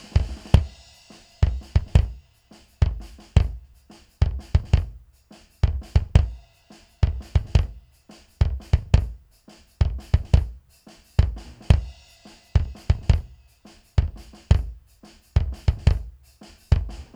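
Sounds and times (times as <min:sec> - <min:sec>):
bass drum: 0:00.0 - 0:17.1.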